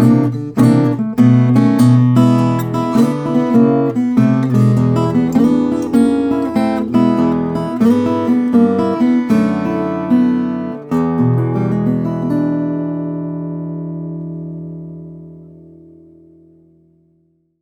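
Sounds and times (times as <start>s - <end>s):
double top guitar with walnut and Adirondack red spruce inside and Engelmann spruce face: 0.0s - 17.4s.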